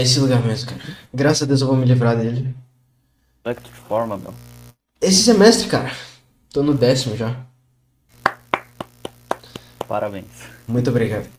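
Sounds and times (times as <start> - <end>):
speech: 0.0 - 2.6, 3.4 - 7.5, 9.9 - 11.3
round of applause: 8.2 - 10.0.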